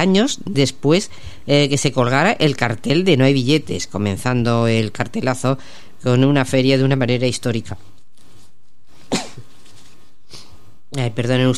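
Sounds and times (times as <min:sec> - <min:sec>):
speech: 0:00.0 - 0:08.0, 0:10.9 - 0:11.5
radio host sneezing from an allergy: 0:09.0 - 0:09.5.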